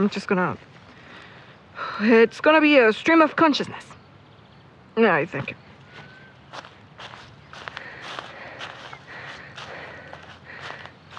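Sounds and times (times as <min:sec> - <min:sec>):
speech: 0:00.0 - 0:00.8, 0:02.0 - 0:03.9, 0:05.0 - 0:05.7
footsteps crunching of someone hiking uphill outdoors: 0:05.9 - 0:11.1.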